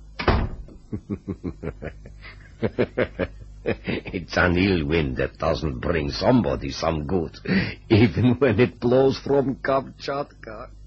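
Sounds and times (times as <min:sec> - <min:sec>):
door being closed: 0:00.2 - 0:00.8
laughter: 0:00.9 - 0:04.3
speech: 0:00.9 - 0:10.8.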